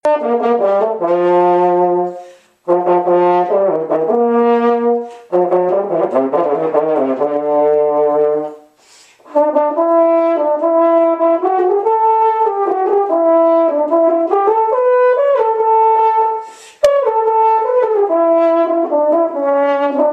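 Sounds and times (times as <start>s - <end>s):
French horn: 0.0s - 20.1s.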